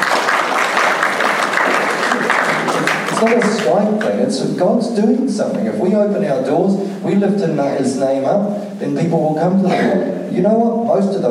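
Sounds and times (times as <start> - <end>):
audience clapping: 0.0 - 4.3
speech: 3.2 - 11.3.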